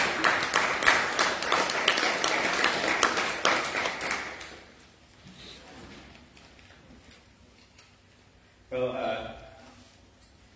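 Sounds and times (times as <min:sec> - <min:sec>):
round of applause: 0:00.0 - 0:04.7.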